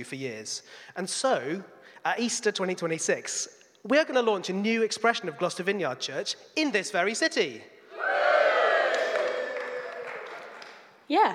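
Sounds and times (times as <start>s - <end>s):
speech: 0.0s - 8.2s, 11.1s - 11.3s
audience cheering: 7.9s - 10.8s.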